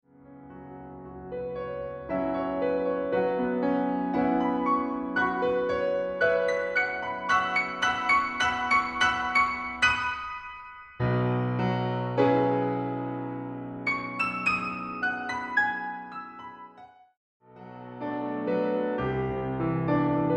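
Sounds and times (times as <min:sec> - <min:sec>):
solo piano: 0:00.1 - 0:20.3.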